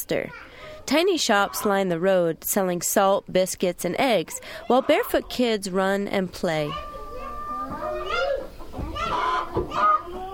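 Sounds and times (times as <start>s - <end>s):
speech: 0.0s - 6.9s
chickens in a village: 4.7s - 5.2s, 6.7s - 10.3s.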